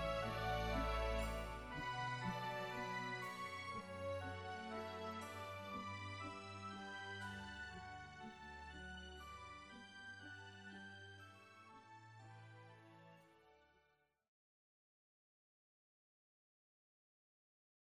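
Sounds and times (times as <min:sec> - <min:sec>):
canon music: 0:00.0 - 0:11.7.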